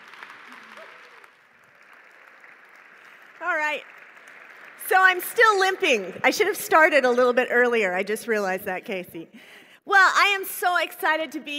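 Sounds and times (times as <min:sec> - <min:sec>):
audience applause welcoming a guest onto a stage: 0:00.0 - 0:06.2
speech: 0:03.7 - 0:04.0, 0:04.9 - 0:11.5.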